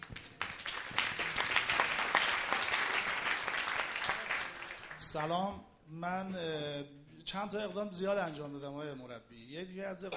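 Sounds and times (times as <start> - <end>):
audience applause: 0.0 - 5.1
speech: 5.1 - 10.1.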